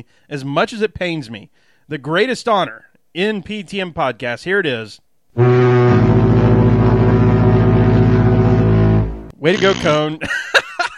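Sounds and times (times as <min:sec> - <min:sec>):
speech: 0:00.0 - 0:05.6, 0:09.4 - 0:10.6
horn blown in a sustained blast: 0:05.4 - 0:10.1
laughter: 0:10.2 - 0:10.9.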